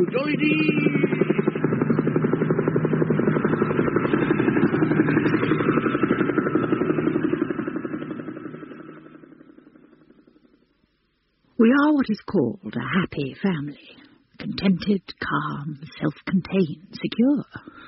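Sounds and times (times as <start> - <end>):
helicopters flying overhead: 0.0 - 10.6
speech: 0.1 - 0.8, 11.8 - 14.0, 14.6 - 17.7.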